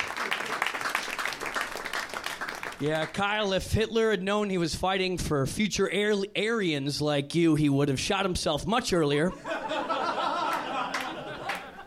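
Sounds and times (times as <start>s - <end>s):
crowd applause: 0.0s - 3.2s, 10.1s - 11.8s
speech: 2.8s - 9.6s
laughter: 9.3s - 11.8s.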